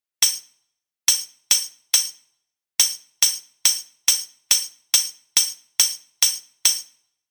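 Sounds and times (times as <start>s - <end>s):
tambourine rhythm: 0.2s - 0.5s, 1.1s - 2.2s, 2.8s - 7.1s.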